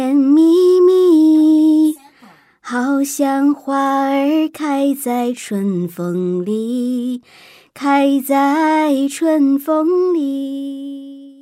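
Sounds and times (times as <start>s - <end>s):
Chinese woman singing: 0.0s - 11.4s.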